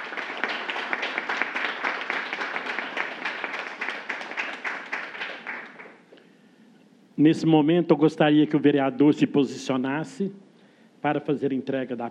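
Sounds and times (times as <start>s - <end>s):
applause at a formal ceremony: 0.0s - 6.1s
speech: 7.2s - 10.4s, 11.0s - 12.0s.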